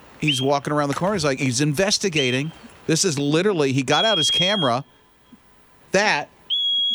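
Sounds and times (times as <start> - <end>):
groundhog whistle pig whistling call: 0.2 - 0.6, 2.0 - 2.7, 3.9 - 4.9, 6.5 - 6.9
speech: 0.2 - 5.0, 5.9 - 6.4.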